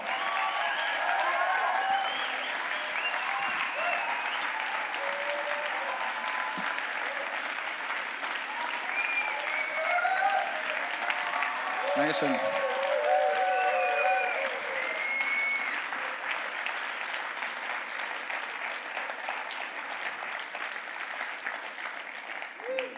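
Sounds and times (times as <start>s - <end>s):
congregation applause welcoming the preacher: 0.0s - 22.9s
speech: 12.1s - 12.6s.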